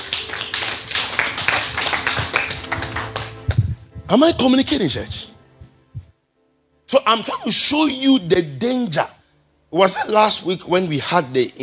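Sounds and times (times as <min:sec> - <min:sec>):
audience clapping hands: 0:00.0 - 0:03.7
speech: 0:04.1 - 0:05.3, 0:07.0 - 0:11.6.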